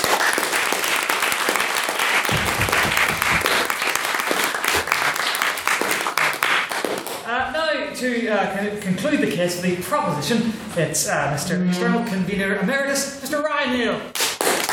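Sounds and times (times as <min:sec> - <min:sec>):
audience applause: 0:00.0 - 0:07.2, 0:14.3 - 0:14.7
speech: 0:08.0 - 0:14.2.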